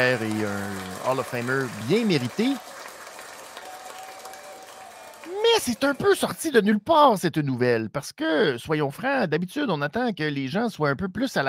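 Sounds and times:
speech: 0.0 - 2.7, 5.6 - 11.4
crowd applause at a WWE SmackDown event: 0.0 - 6.5.

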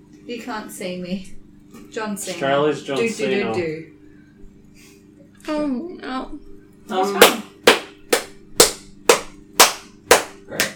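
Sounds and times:
speech: 0.3 - 4.0, 5.5 - 7.4
hand claps: 7.1 - 10.7.

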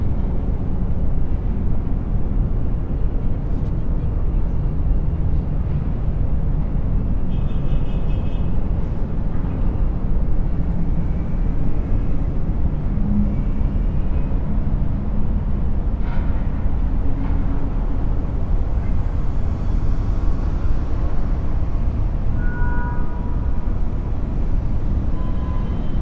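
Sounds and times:
city traffic rumble from twenty floors above a busy street: 0.0 - 25.9.

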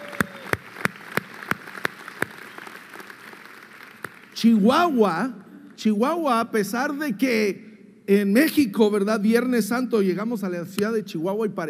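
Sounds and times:
audience applause: 0.0 - 4.4
speech: 4.4 - 11.6.

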